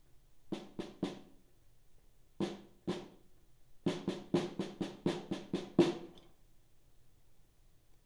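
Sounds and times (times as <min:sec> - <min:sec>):
snare drum solo: 0:00.5 - 0:01.4, 0:02.4 - 0:03.3, 0:03.9 - 0:06.2.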